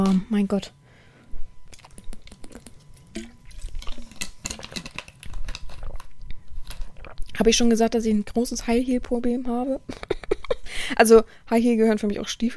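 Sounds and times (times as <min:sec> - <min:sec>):
speech: 0:00.0 - 0:00.8, 0:07.4 - 0:10.1, 0:10.7 - 0:12.5
person sipping water: 0:01.7 - 0:07.4
laughter: 0:09.9 - 0:10.7.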